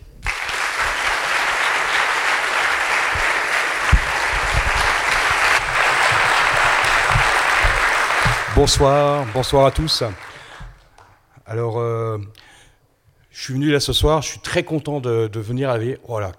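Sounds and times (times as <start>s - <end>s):
audience applause: 0.2s - 11.1s
speech: 8.6s - 10.2s, 11.5s - 12.5s, 13.4s - 16.3s.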